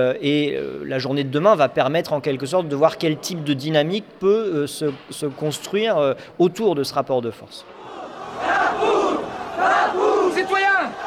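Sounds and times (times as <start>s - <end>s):
speech: 0.0s - 8.0s
crowd shouting at storming of Bastille: 7.7s - 11.0s.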